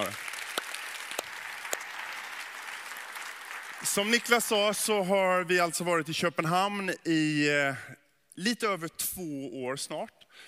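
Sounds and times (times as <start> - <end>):
audience applause: 0.0 - 5.1
speech: 3.8 - 10.4.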